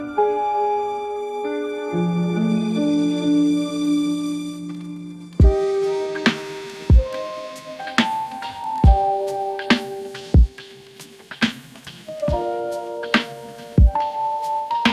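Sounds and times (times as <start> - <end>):
elegant strings: 0.0 - 8.8
chill piano: 0.0 - 14.9.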